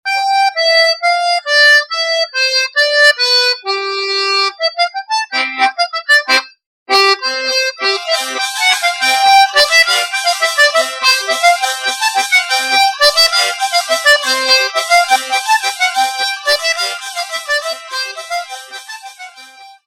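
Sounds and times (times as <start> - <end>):
bourree folk dance music from Auvergne, France: 0.1 - 19.8.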